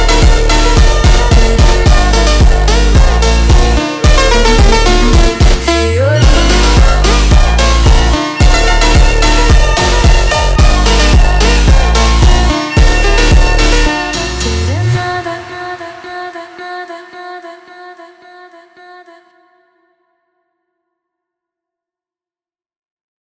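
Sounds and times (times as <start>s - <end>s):
slowed funk music: 0.0s - 15.2s.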